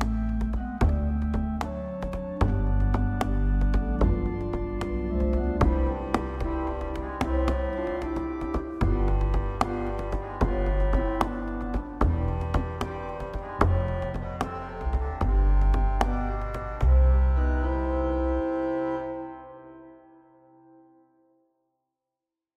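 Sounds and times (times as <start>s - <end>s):
organ reeds: 0.0s - 20.2s.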